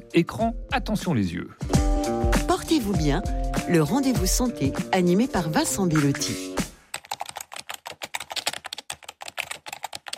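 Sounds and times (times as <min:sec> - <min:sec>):
speech: 0:00.1 - 0:01.8, 0:02.7 - 0:06.6
typing on a computer keyboard: 0:06.9 - 0:10.1.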